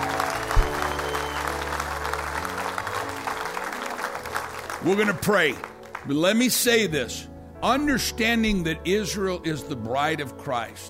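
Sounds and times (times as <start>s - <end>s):
audience applause: 0.0s - 6.1s
speech: 4.8s - 10.8s.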